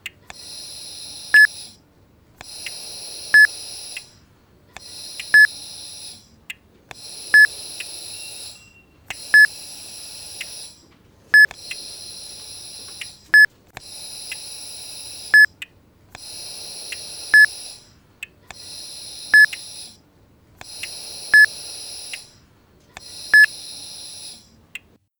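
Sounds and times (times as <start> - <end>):
oxygen pump: 0.0 - 24.7
normal heart rate monitor beeps: 0.3 - 1.8, 2.4 - 4.2, 4.8 - 6.3, 6.9 - 15.6, 16.2 - 17.9, 18.5 - 20.0, 20.6 - 22.4, 23.0 - 24.6.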